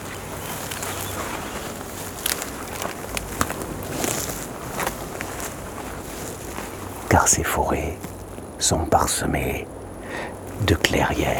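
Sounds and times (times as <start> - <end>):
crunchy footsteps in brittle vegetation: 0.0 - 11.3
insects hissing: 0.0 - 11.3
speech: 7.2 - 9.8, 10.6 - 11.3.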